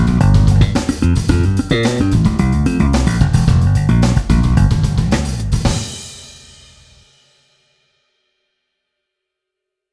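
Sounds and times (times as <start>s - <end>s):
jazz bass guitar slap tone: 0.0s - 6.0s.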